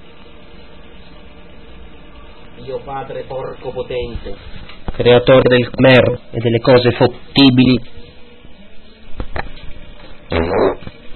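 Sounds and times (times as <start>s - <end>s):
speech: 2.6s - 8.0s
fart: 10.3s - 11.0s.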